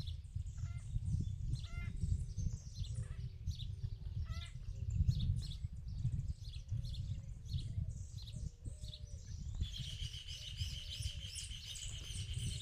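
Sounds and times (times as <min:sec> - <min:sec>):
small birds chirping in the countryside: 0:00.0 - 0:12.6.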